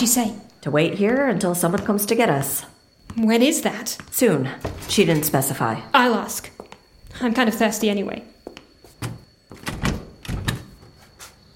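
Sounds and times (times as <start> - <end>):
speech: 0.0 - 8.3
handle of a locked door rattling: 9.6 - 10.7.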